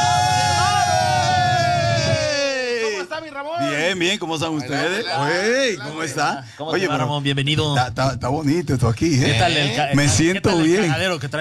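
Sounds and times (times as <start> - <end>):
audience clapping and cheering: 0.0 - 2.6
person whooping: 0.0 - 3.1
speech: 3.5 - 11.3.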